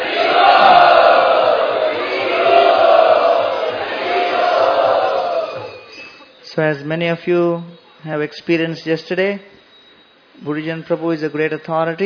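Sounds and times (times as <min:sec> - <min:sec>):
audience chanting loudly in unison to welcome a senior spiritual teacher: 0:00.0 - 0:05.9
speech: 0:06.7 - 0:09.5, 0:10.4 - 0:12.0.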